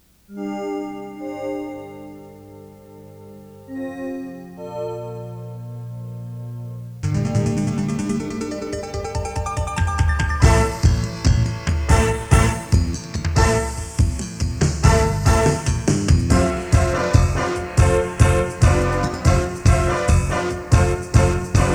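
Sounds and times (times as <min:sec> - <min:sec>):
fanfare theme: 0:07.0 - 0:21.7.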